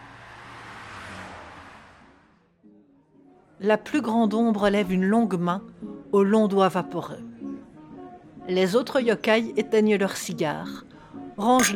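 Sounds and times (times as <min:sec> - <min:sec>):
vehicle engine on a road: 0:00.0 - 0:02.6
speech: 0:03.6 - 0:07.3, 0:08.5 - 0:11.7.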